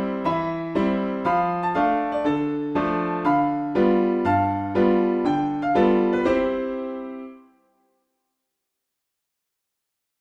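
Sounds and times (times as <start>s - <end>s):
piano: 0.0s - 8.0s.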